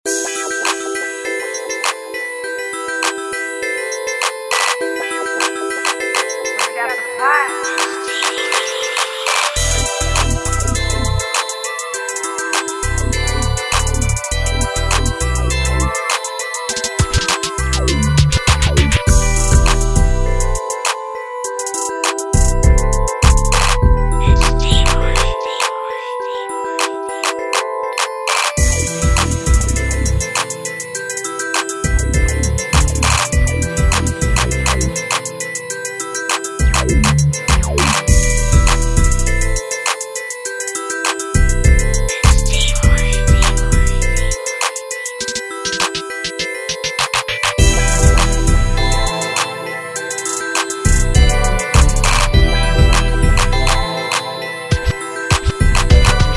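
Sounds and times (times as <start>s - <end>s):
music beat: 0.1s - 56.3s.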